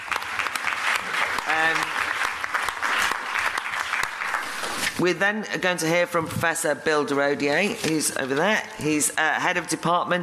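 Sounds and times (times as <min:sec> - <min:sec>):
audience applause welcoming a speaker: 0:00.0 - 0:05.0
speech: 0:05.0 - 0:10.2.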